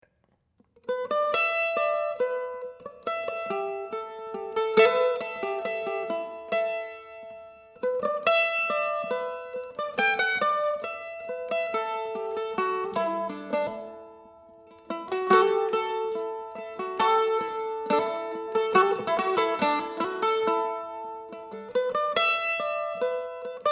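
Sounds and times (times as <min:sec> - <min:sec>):
soft sad mandolin: 0:00.6 - 0:23.6.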